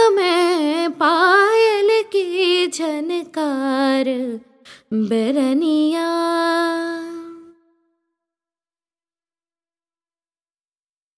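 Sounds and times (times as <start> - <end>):
person singing Indian classical vocals: 0.0 - 7.6.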